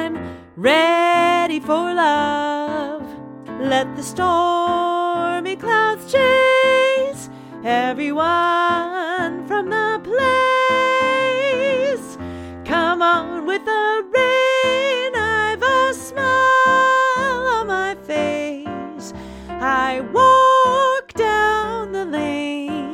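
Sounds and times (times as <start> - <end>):
baritone singing practice track: 0.0 - 22.9.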